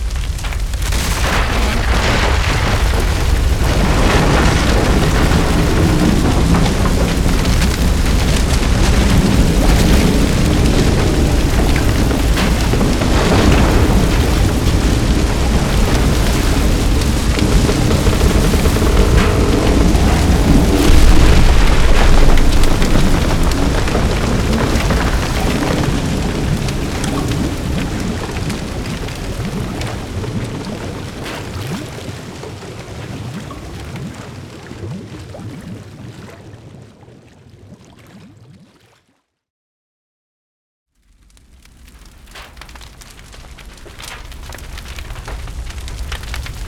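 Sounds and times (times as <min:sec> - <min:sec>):
ship sinking: 0:00.2 - 0:31.8.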